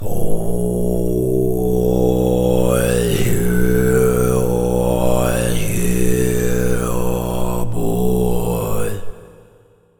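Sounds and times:
low chanting with reverb: 0:00.0 - 0:09.9.

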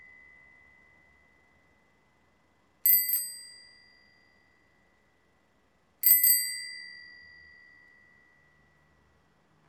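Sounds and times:
bicycle bell: 0:00.0 - 0:02.0, 0:02.8 - 0:05.2, 0:06.0 - 0:09.2.

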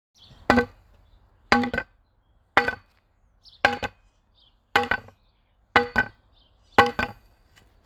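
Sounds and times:
wood hitting wood: 0:00.4 - 0:00.8, 0:01.5 - 0:01.9, 0:02.6 - 0:02.9, 0:03.6 - 0:04.0, 0:04.8 - 0:05.1, 0:05.8 - 0:06.2, 0:06.8 - 0:07.2.

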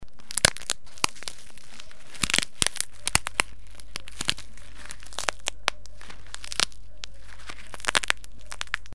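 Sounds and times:
bone cracking: 0:00.0 - 0:08.9.

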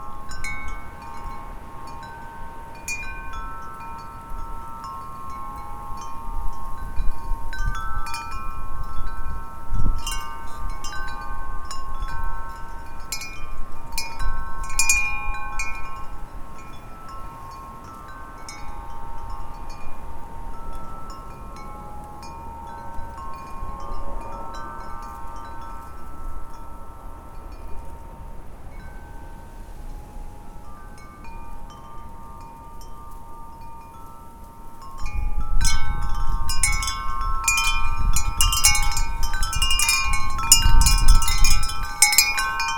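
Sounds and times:
chimes: 0:00.0 - 0:42.7.

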